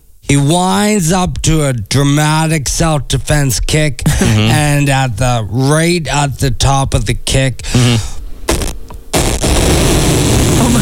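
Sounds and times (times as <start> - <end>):
speech: 0.3 - 8.1
loud fart echoing through the room: 7.7 - 10.7.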